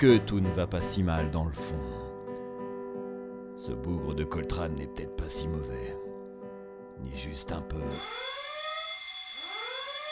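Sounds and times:
speech: 0:00.0 - 0:02.0, 0:03.6 - 0:06.0, 0:07.0 - 0:08.3
prison alarm siren: 0:07.9 - 0:10.1.

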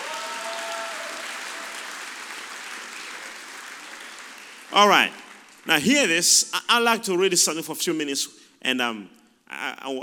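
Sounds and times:
audience applause: 0:00.0 - 0:05.7
speech: 0:04.7 - 0:10.0.

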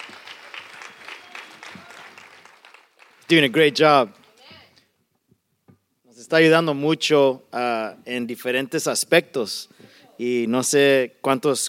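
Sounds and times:
audience applause: 0:00.0 - 0:04.2
speech: 0:03.3 - 0:04.2, 0:06.3 - 0:11.6.

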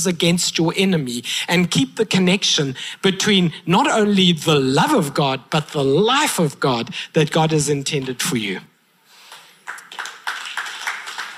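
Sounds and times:
speech: 0:00.0 - 0:08.7
audience clapping: 0:09.3 - 0:11.3.

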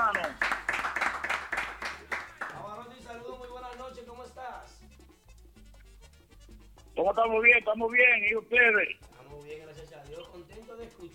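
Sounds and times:
applause: 0:00.0 - 0:03.9
speech: 0:07.0 - 0:09.0.

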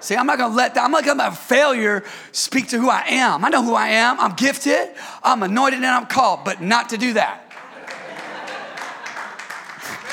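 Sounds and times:
speech: 0:00.1 - 0:07.4
laughter: 0:06.4 - 0:10.1
audience members clapping: 0:07.4 - 0:10.1.

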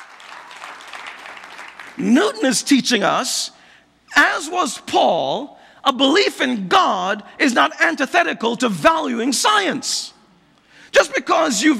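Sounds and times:
audience applause: 0:00.0 - 0:02.0
speech: 0:02.0 - 0:03.6, 0:04.2 - 0:10.2, 0:10.9 - 0:11.7.

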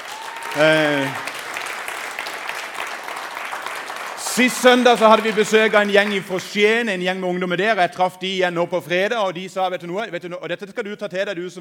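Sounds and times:
audience applause: 0:00.0 - 0:06.9
speech: 0:00.6 - 0:01.3, 0:04.4 - 0:11.6.

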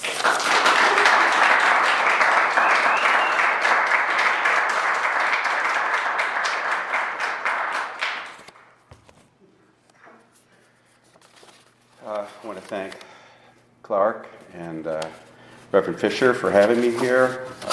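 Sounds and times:
audience applause welcoming a speaker: 0:00.0 - 0:08.5
speech: 0:14.8 - 0:17.7.

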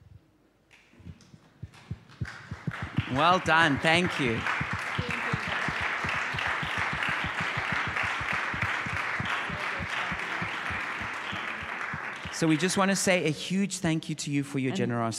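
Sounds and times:
audience applause: 0:01.7 - 0:13.3
speech: 0:03.1 - 0:04.6, 0:12.4 - 0:15.1.

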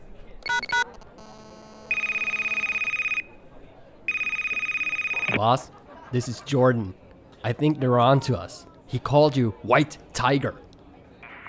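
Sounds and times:
quick telephone dialing beeps: 0:00.4 - 0:03.2
telephone ringing on an outgoing call: 0:00.4 - 0:03.2, 0:04.1 - 0:05.3
speech: 0:05.4 - 0:10.6.

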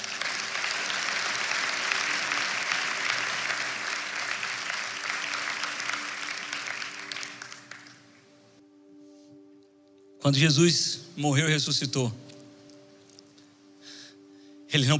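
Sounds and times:
audience applause: 0:00.0 - 0:08.2
speech: 0:10.2 - 0:12.2, 0:14.8 - 0:14.9.

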